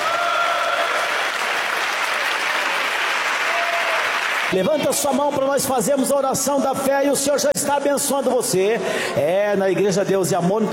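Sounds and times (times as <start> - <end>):
congregation applauding in church: 0.0 - 4.8
speech: 4.5 - 10.7.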